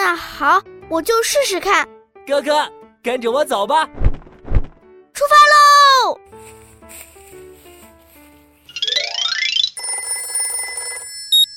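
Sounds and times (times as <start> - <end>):
speech: 0.2 - 4.0, 5.2 - 6.2
phone watch ringing with electronic melody, swoosh, trilling tone and beep: 8.7 - 11.5.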